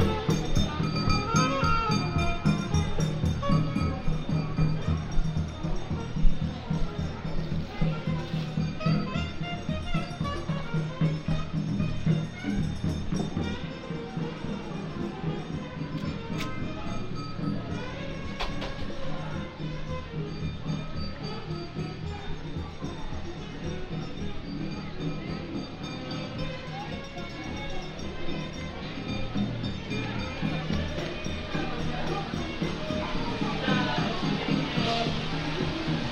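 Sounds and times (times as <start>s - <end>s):
chindon street band music: 0.0s - 36.1s.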